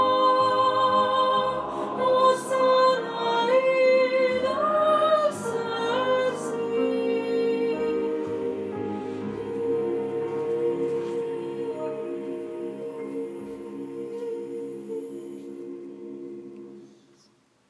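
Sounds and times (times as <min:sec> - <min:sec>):
soprano singing a Sanctus: 0:00.0 - 0:17.2.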